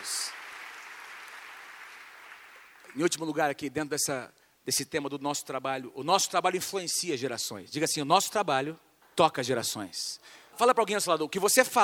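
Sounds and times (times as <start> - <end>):
crowd applauding: 0.0 - 3.0
speech: 2.9 - 11.8.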